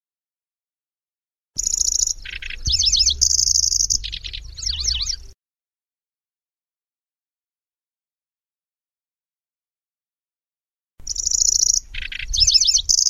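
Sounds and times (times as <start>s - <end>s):
Grasshopper warbler song: 1.6s - 5.4s, 11.0s - 13.0s.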